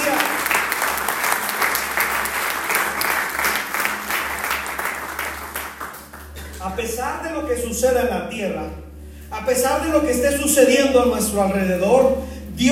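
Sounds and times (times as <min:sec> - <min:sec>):
audience applause: 0:00.0 - 0:06.6
speech: 0:06.8 - 0:12.7.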